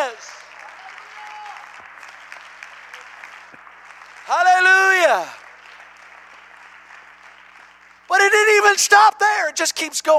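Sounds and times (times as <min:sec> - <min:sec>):
audience clapping hands: 0:00.0 - 0:10.1
speech: 0:04.3 - 0:04.5, 0:08.8 - 0:10.1.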